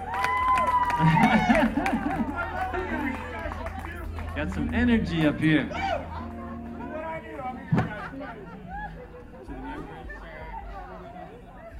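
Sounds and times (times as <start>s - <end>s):
scattered clapping: 0.0s - 5.4s
lively crowd cheering and shouting: 0.0s - 11.7s
laughter: 0.7s - 11.7s
speech: 1.0s - 2.5s, 4.4s - 6.0s.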